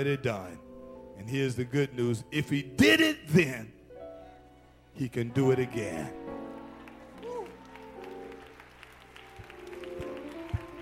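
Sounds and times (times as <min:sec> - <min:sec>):
speech: 0:00.0 - 0:03.8, 0:05.0 - 0:06.2
audience clapping hands: 0:06.3 - 0:10.8.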